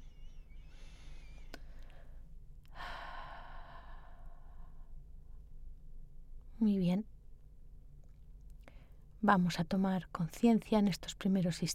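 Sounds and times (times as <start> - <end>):
slow deep breath in and out during a guided breathing exercise: 0.0 - 5.1, 8.6 - 9.1
steady low hum: 0.0 - 11.7
speech: 6.6 - 7.1, 9.2 - 11.7.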